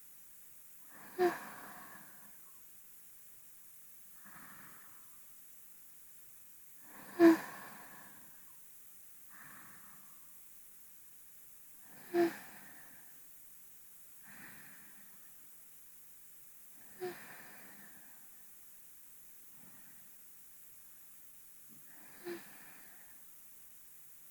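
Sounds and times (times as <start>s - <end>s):
binaural sleep breathing: 0.9s - 2.4s, 4.2s - 5.2s, 6.8s - 8.4s, 9.3s - 10.3s, 11.8s - 13.2s, 14.2s - 15.3s, 16.8s - 18.3s, 21.8s - 23.3s.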